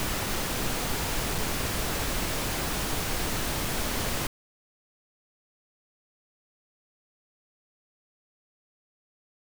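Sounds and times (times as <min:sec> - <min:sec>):
left-right frequency balance test tones for stereo setup: 0:00.0 - 0:04.3.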